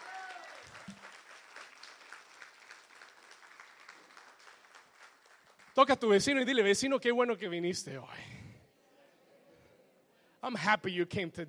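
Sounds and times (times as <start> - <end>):
audience applauding: 0.0 - 6.2
speech: 5.8 - 8.4, 10.5 - 11.4.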